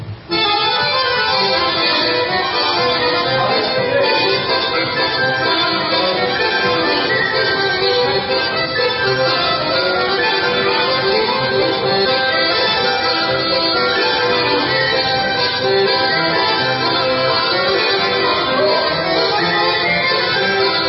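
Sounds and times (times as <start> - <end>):
Rumanian instrumental music: 0.3 - 20.8.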